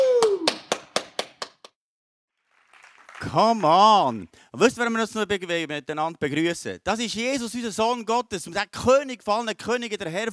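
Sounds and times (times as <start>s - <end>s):
falling vocal whoop: 0.0s - 0.7s
sharp evenly spaced claps: 0.0s - 1.8s, 2.5s - 3.8s
speech: 3.3s - 10.3s.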